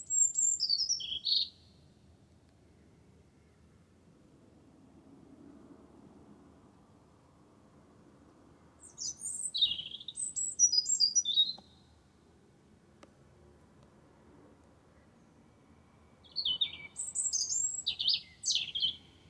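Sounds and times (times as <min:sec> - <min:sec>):
wren singing: 0:00.0 - 0:01.7, 0:08.8 - 0:11.9, 0:16.2 - 0:19.2.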